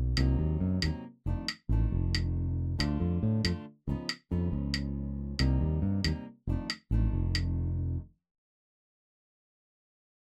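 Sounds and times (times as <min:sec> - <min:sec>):
bass playing in three: 0:00.0 - 0:08.1.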